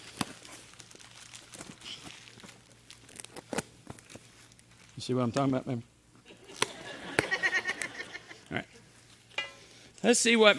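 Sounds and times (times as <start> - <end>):
gift wrapping paper being torn open: 0.0 - 5.1
speech: 5.0 - 5.9, 8.5 - 8.7, 10.0 - 10.5
laughter: 6.3 - 8.5.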